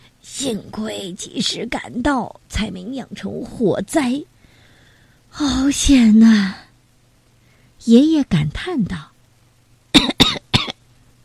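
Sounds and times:
speech: 0:00.4 - 0:04.3, 0:05.3 - 0:06.7, 0:07.8 - 0:09.1
person coughing from smoke: 0:10.0 - 0:10.8.

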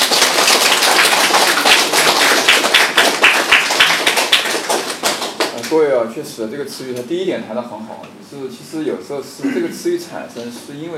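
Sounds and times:
applause: 0:00.0 - 0:05.8
speech: 0:05.7 - 0:10.9.

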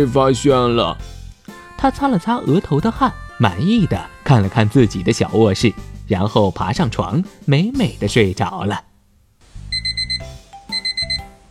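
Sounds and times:
speech: 0:00.0 - 0:01.2, 0:01.8 - 0:08.9
alarm clock ringing: 0:09.7 - 0:11.4.

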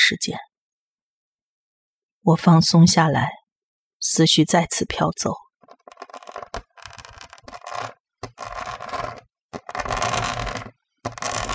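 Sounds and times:
speech: 0:00.1 - 0:00.5, 0:02.2 - 0:03.4, 0:04.0 - 0:05.4
deep scratching from the neighbouring storage room: 0:05.6 - 0:11.5.

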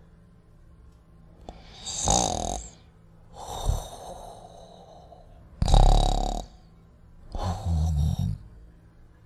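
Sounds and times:
person imitating snoring: 0:01.7 - 0:04.8, 0:05.6 - 0:06.6, 0:07.3 - 0:08.5.

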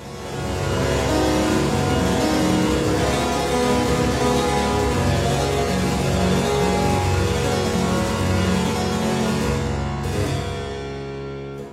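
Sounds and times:
bright harpsichord background music: 0:00.0 - 0:11.7.

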